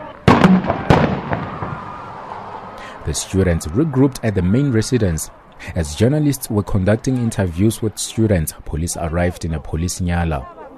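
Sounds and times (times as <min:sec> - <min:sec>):
stun grenade bangs fired by police at students: 0:00.3 - 0:01.8
speech: 0:03.1 - 0:10.6.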